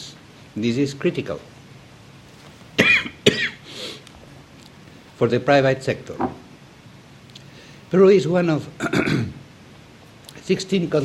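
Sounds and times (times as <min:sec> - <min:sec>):
speech: 0:00.6 - 0:01.5, 0:05.2 - 0:06.4, 0:07.9 - 0:09.0, 0:10.5 - 0:11.0
speaker coughing at a talk on disaster risk: 0:02.8 - 0:03.7, 0:08.8 - 0:09.4
rasping throat clearing: 0:08.8 - 0:09.4.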